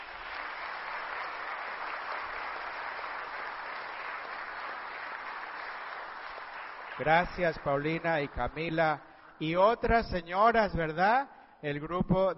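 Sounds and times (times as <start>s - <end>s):
audience applause: 0.0s - 8.8s
speech: 7.0s - 12.3s.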